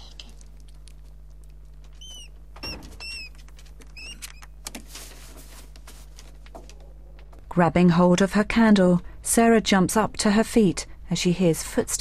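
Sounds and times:
mouse scurrying: 0.2s - 7.3s
mouse squeaking: 1.9s - 4.6s
speech: 7.6s - 11.9s.

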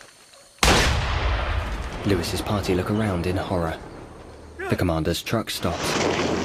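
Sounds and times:
gunshot during a jungle firefight: 0.6s - 2.0s
speech: 2.0s - 3.9s, 4.7s - 6.3s.

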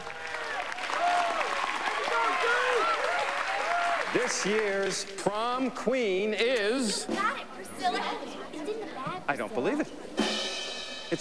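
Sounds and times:
crowd clapping at a school prom: 0.0s - 5.8s
voices and shouts at a school prom: 0.1s - 10.1s
speech: 4.1s - 10.1s.

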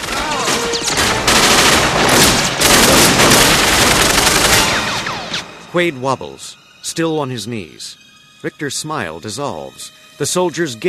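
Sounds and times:
automatic gunfire from a film soundtrack: 0.0s - 5.5s
speech: 5.7s - 10.8s.

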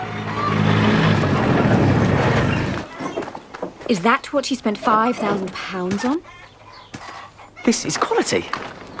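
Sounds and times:
leaf collector vehicle motor roaring as driven into a barn: 0.0s - 2.9s
speech: 3.9s - 6.4s, 7.6s - 8.9s.

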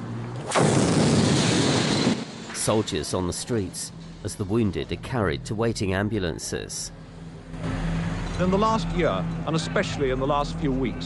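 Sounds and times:
bomb exploding on a city street in Belfast: 0.5s - 2.5s
speech: 2.6s - 7.8s, 8.4s - 11.0s.

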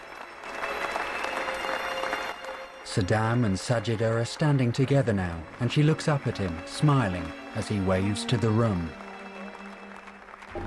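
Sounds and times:
guests applauding at an indoor gathering: 0.0s - 10.6s
speech: 2.9s - 9.0s.

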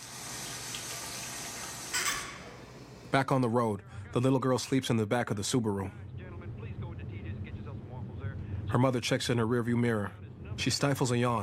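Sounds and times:
water running from a sink tap in a restroom: 0.0s - 2.8s
speech: 3.1s - 6.2s, 8.7s - 11.4s.

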